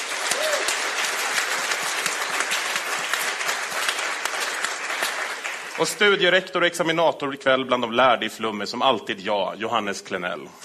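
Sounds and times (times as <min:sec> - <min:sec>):
audience applause: 0:00.0 - 0:06.5
speech: 0:05.8 - 0:10.6.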